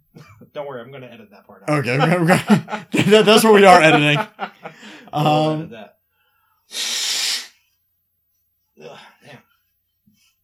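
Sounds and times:
speech: 0.2s - 6.0s, 6.7s - 7.0s
laughter: 1.7s - 5.7s
man blowing his nose: 6.7s - 7.7s.

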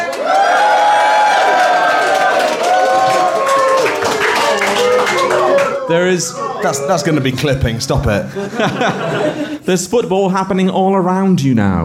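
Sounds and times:
stadium crowd cheering and clapping: 0.0s - 7.7s
laughter: 4.2s - 9.7s
speech: 5.9s - 11.8s.

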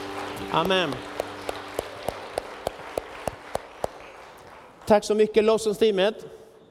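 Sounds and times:
audience clapping steadily and rhythmically: 0.0s - 5.3s
speech: 0.5s - 1.1s, 4.9s - 6.4s.

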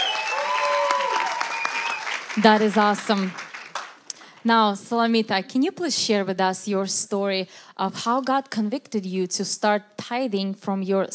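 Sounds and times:
round of applause from a group: 0.0s - 4.4s
speech: 2.4s - 3.4s, 4.4s - 11.1s.

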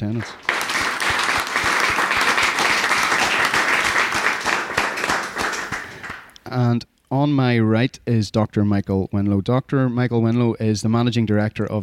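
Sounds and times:
speech: 0.0s - 0.6s, 6.5s - 11.8s
audience applause welcoming a speaker at a talk: 0.0s - 6.4s.

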